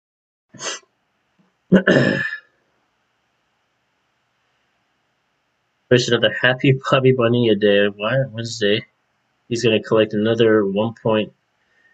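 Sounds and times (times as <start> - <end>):
sneeze: 0.6 - 0.8, 1.7 - 2.4
speech: 1.7 - 2.3, 5.9 - 8.9, 9.5 - 11.4.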